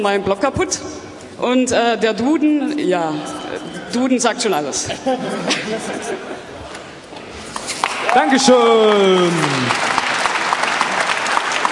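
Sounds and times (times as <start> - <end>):
speech: 0.0 - 6.4, 8.2 - 9.9
laughter: 3.6 - 7.0
audience applause: 7.6 - 11.6.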